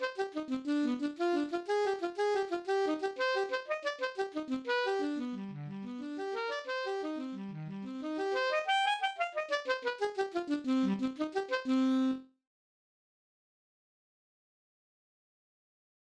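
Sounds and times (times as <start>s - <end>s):
alto saxophone: 0.0s - 12.3s.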